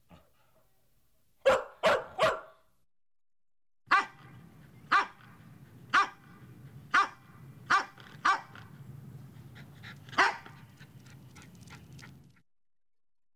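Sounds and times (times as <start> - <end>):
medium-sized dog barking: 1.4 - 2.6, 3.9 - 4.3, 4.9 - 5.3, 5.9 - 6.3, 6.9 - 8.6, 10.1 - 10.6.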